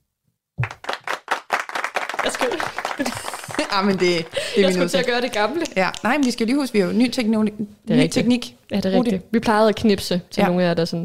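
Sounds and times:
hosts hand clapping: 0.6s - 6.8s
laughter: 2.2s - 5.5s
speech: 2.2s - 11.0s.

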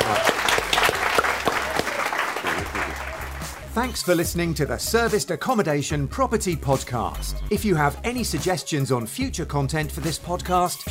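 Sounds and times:
round of applause from a small group: 0.0s - 3.7s
speech: 3.8s - 10.8s.

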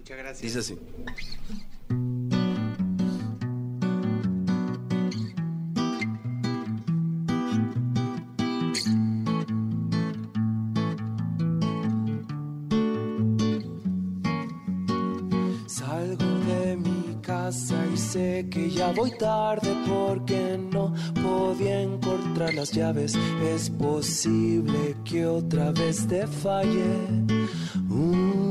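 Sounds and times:
speech: 0.0s - 2.0s, 18.9s - 20.4s, 22.5s - 28.4s
live acoustic guitar playing: 0.6s - 28.4s.

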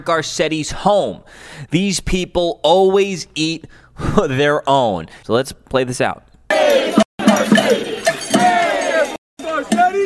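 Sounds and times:
speech: 0.0s - 6.8s, 7.4s - 8.0s
protest crowd screaming and yelling: 6.5s - 10.0s.

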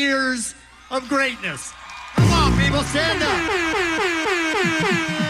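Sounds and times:
speech: 0.0s - 5.1s
gunshots sound effect: 2.2s - 3.8s.

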